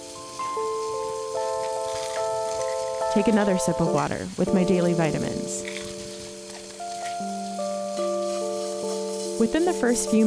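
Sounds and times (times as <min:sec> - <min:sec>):
hands washed under bathroom sink tap: 0:00.0 - 0:10.2
speech: 0:03.1 - 0:05.8, 0:09.4 - 0:10.2.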